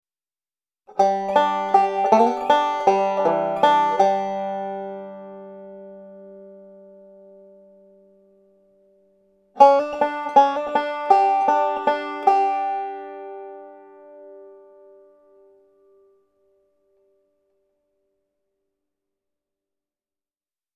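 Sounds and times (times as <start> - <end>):
banjo fill-in licks in G: 0.9 - 7.8, 9.6 - 15.6.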